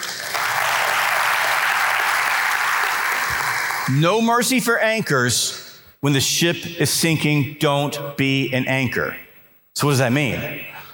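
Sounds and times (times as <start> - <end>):
audience clapping: 0.0 - 4.0
speech: 3.9 - 9.2, 9.8 - 10.8.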